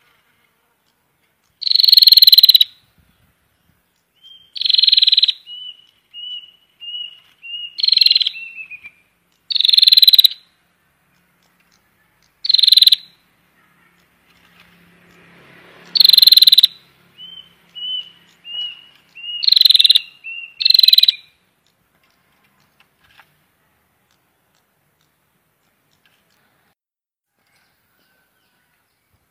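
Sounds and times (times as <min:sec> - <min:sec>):
prinia buzzy rattling call bursts: 0:00.8 - 0:02.8, 0:04.5 - 0:08.8, 0:09.4 - 0:10.5, 0:11.1 - 0:23.4.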